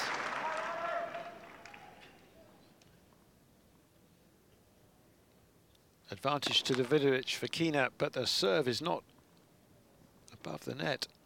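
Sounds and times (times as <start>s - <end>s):
tennis crowd cheering and applauding: 0.0s - 2.2s
speech: 6.1s - 9.1s, 10.4s - 11.2s.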